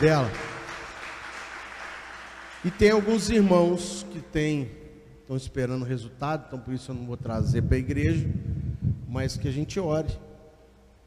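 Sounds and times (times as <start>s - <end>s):
speech: 0.0s - 0.4s, 2.6s - 8.5s, 9.1s - 10.2s
audience applause: 0.0s - 3.3s.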